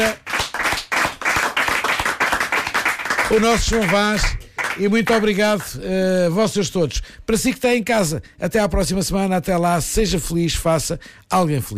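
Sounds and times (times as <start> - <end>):
speech: 0.0 - 0.2, 3.3 - 11.7
audience applause: 0.0 - 5.7.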